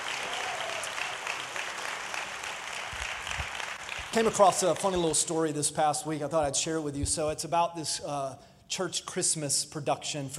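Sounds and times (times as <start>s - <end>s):
audience clapping: 0.0s - 5.3s
speech: 4.1s - 10.3s.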